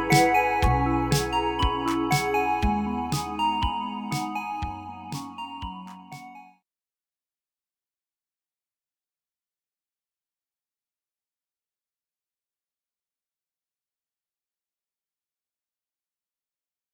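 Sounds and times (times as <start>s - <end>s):
chillwave music: 0.0s - 6.6s.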